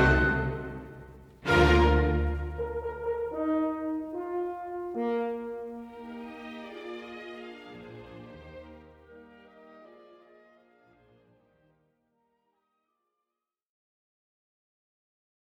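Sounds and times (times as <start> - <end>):
symphony second movement in C minor: 0.0 - 11.2.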